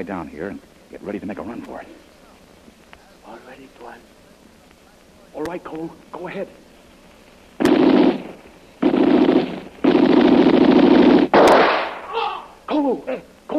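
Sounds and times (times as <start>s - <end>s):
speech: 0.0s - 2.1s, 3.3s - 4.2s, 5.4s - 6.6s, 12.8s - 13.5s
gunshot: 7.6s - 12.2s.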